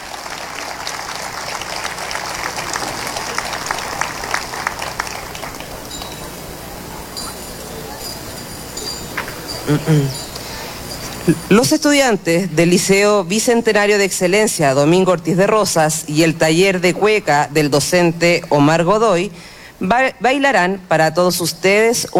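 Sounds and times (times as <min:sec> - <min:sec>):
audience applause: 0:00.0 - 0:07.2
speech: 0:09.7 - 0:10.2, 0:11.2 - 0:22.1.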